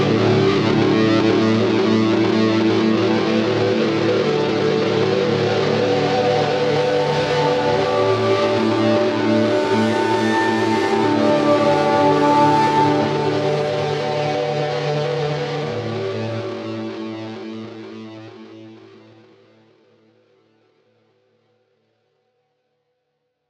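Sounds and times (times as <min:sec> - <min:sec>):
synthesizer drone: 0:00.0 - 0:18.2.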